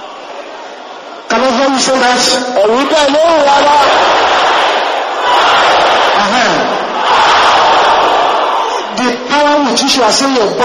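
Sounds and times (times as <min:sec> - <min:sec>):
crowd shouting aggressively: 0:00.0 - 0:01.3, 0:02.6 - 0:09.0
speech: 0:01.6 - 0:04.3, 0:09.6 - 0:10.6.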